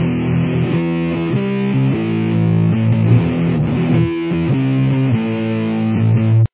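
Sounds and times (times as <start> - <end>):
guitar with chorus effect: 0.0 - 6.5.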